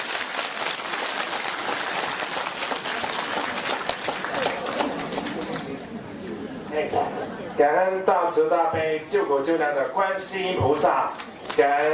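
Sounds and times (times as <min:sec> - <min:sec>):
audience applause: 0:00.0 - 0:05.8
speech: 0:07.6 - 0:11.9.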